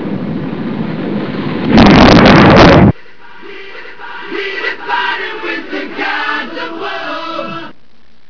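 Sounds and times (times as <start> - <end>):
rocket: 1.6 - 3.0.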